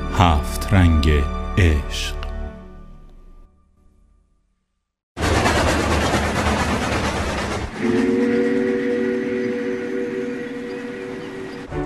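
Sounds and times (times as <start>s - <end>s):
speech: 0.2s - 2.2s
English steam locomotive: 5.2s - 11.7s.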